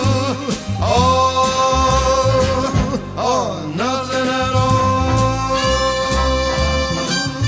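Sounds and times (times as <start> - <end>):
singer impersonator's voice: 0.0 - 7.3.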